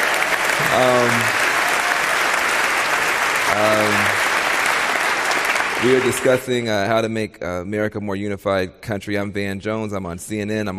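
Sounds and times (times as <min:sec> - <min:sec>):
audience applause: 0:00.0 - 0:06.6
speech: 0:00.8 - 0:01.4, 0:03.5 - 0:04.2, 0:05.8 - 0:10.7.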